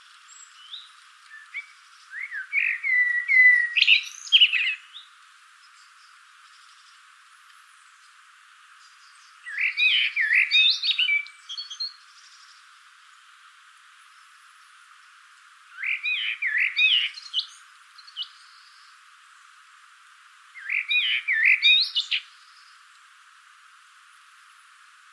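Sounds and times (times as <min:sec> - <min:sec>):
common blackbird fluty song: 0:00.0 - 0:07.1, 0:08.8 - 0:13.3, 0:14.0 - 0:19.5, 0:20.5 - 0:23.1.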